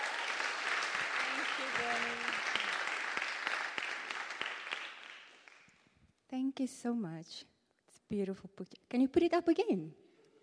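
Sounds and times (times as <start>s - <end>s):
audience applause in a church service welcoming a guest: 0.0s - 5.7s
speech: 6.6s - 7.5s, 8.1s - 10.0s.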